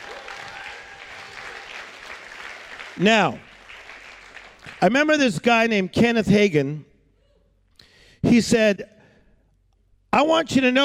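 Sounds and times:
audience clapping and shouting: 0.0s - 5.2s
speech: 3.0s - 3.5s, 4.8s - 6.9s, 8.3s - 8.9s, 10.1s - 10.8s.

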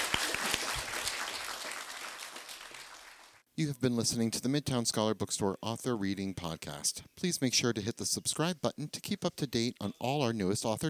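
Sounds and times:
crowd applause: 0.0s - 3.4s
speech: 3.6s - 10.8s.

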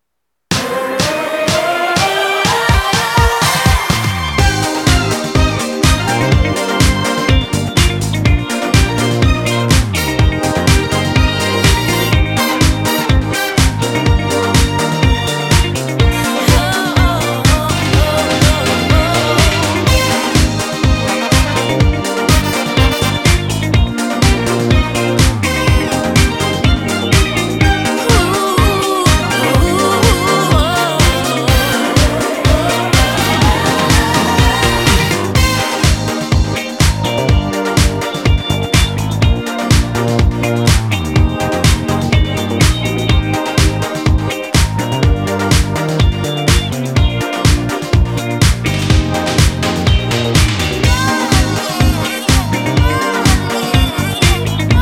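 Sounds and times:
disco tune: 0.0s - 54.7s.

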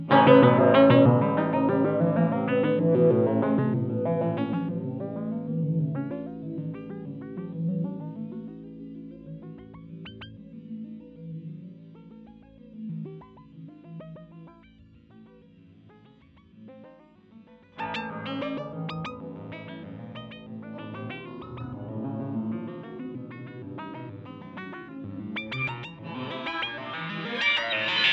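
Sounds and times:
Fender bass sequence: 0.1s - 7.8s, 17.8s - 27.9s.

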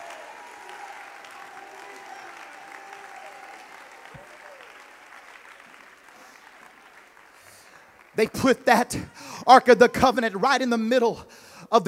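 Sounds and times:
audience shouting: 0.0s - 4.8s
audience clapping: 0.0s - 9.7s
speech: 8.2s - 11.8s.

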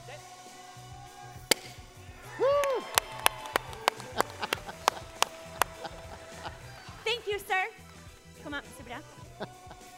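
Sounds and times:
board broken with a hammer fist strike: 1.5s - 1.8s
laughter: 2.3s - 7.1s, 9.2s - 9.9s.

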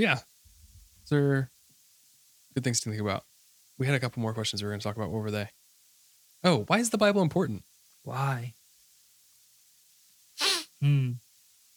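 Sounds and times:
speech: 0.0s - 0.3s, 1.1s - 1.5s, 2.6s - 5.6s, 6.4s - 8.6s, 10.8s - 11.2s
nose sniffle: 10.4s - 11.1s
short low voiced nasal sound: 10.4s - 11.2s.

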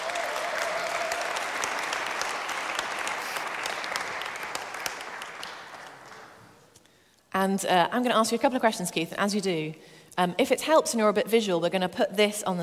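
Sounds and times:
audience applause: 0.0s - 6.6s
speech: 7.4s - 12.6s.

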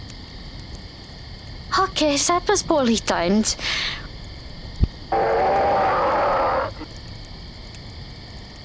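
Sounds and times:
speech: 1.8s - 4.0s
monster roar: 5.1s - 6.9s.

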